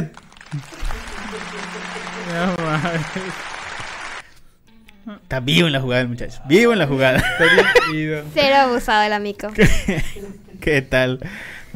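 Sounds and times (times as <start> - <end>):
speech: 0.0 - 3.6, 5.0 - 11.7
applause: 0.0 - 4.2
laughter: 0.4 - 4.2, 7.1 - 8.0, 9.6 - 10.5.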